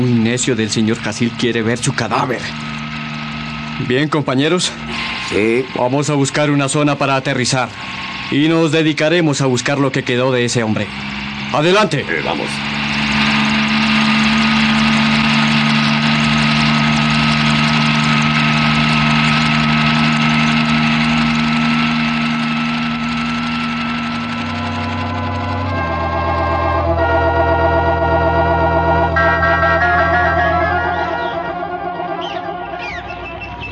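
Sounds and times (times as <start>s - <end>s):
helicopter engine flying away: 0.0s - 33.6s
speech: 0.3s - 2.8s, 3.8s - 12.8s.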